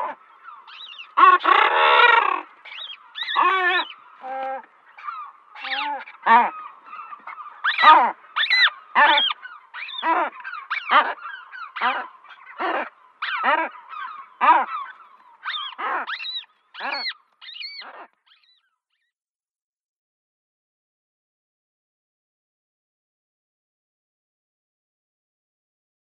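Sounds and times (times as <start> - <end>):
guillemot chorus of harsh buzzy growls: 0.0 - 18.7.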